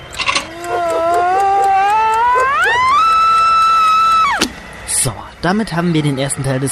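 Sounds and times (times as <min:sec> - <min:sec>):
electric alarm clock screaming: 0:00.0 - 0:04.4
speech: 0:05.4 - 0:06.7.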